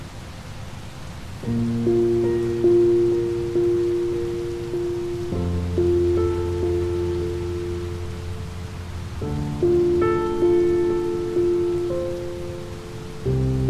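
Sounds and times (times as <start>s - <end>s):
rain: 0.0s - 13.6s
waterfall: 0.0s - 13.6s
calming piano music: 1.3s - 13.6s.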